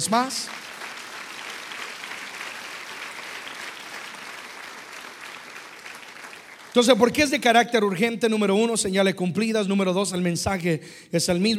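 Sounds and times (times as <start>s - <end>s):
speech: 0.0s - 0.6s, 6.8s - 11.5s
audience applause: 0.0s - 7.4s.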